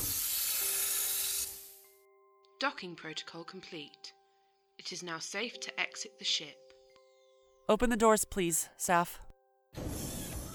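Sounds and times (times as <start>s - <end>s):
hiss of air pressure equalizing: 0.0s - 1.8s
speech: 2.6s - 4.2s, 4.8s - 6.6s, 7.7s - 10.0s.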